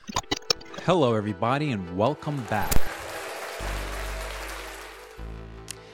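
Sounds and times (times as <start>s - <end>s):
speech: 0.8s - 2.9s
applause: 2.2s - 5.4s.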